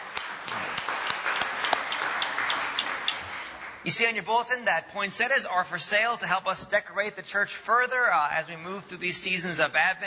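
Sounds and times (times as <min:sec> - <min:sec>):
audience applause: 0:00.0 - 0:03.9
speech: 0:03.8 - 0:10.0.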